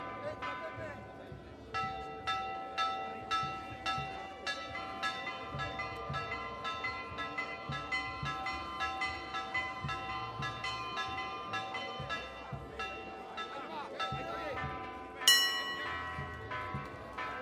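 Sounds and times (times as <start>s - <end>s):
procession church bells ringing: 0.0s - 17.4s.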